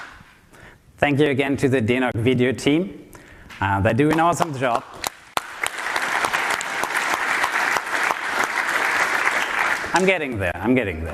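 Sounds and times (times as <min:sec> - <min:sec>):
speech: 0:01.0 - 0:05.0, 0:10.0 - 0:11.1
audience applause: 0:05.0 - 0:10.2.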